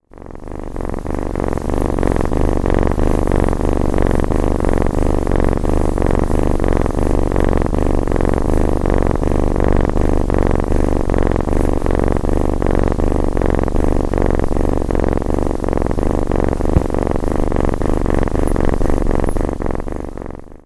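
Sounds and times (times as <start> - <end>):
kitten purring: 0.0 - 20.6.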